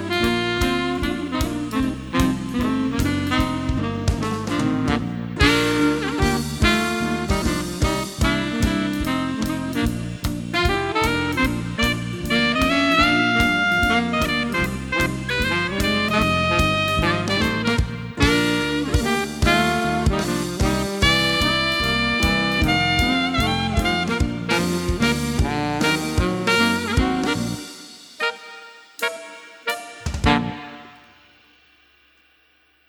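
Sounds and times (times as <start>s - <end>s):
alto saxophone and saxes: 0.0s - 31.7s
rhythm section: 0.0s - 31.9s.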